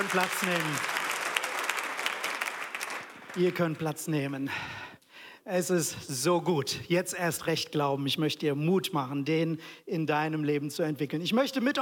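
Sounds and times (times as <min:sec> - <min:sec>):
speech: 0:00.0 - 0:01.0, 0:03.4 - 0:04.8, 0:05.5 - 0:11.8
audience applause: 0:00.0 - 0:03.9.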